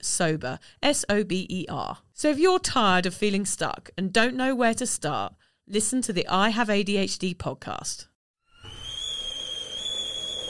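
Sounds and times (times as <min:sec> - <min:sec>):
speech: 0:00.0 - 0:08.1
kettle whistling as water boils: 0:08.4 - 0:10.4
boiling water hiss: 0:08.6 - 0:10.4.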